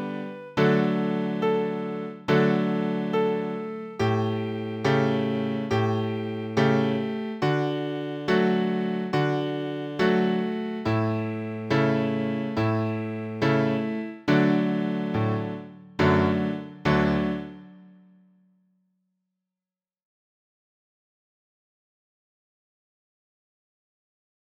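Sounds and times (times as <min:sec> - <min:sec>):
strings playing a D scale: 0:00.0 - 0:17.5.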